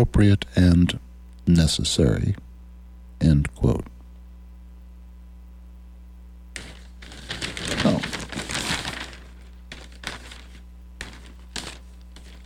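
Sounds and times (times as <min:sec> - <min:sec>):
speech: 0:00.0 - 0:02.4, 0:03.2 - 0:03.9
newspapers crackling: 0:06.6 - 0:12.4.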